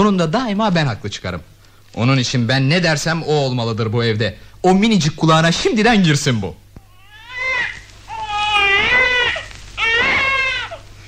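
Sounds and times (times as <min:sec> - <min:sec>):
speech: 0:00.0 - 0:06.6
baby crying: 0:06.8 - 0:10.9.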